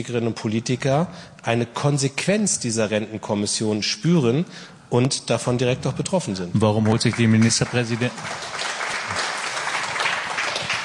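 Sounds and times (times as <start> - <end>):
speech: 0.0 - 8.7
applause during a political debate on pension policy: 6.8 - 10.8.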